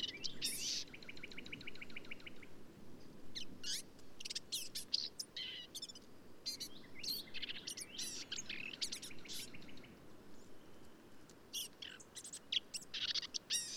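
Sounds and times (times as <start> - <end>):
black-capped vireo singing: 0.0 - 2.5, 3.4 - 13.7.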